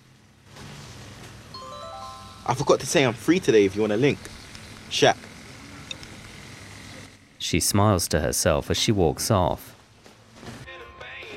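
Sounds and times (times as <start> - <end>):
mobile phone text message alert: 1.6 - 2.9
speech: 2.5 - 5.3, 7.5 - 9.7.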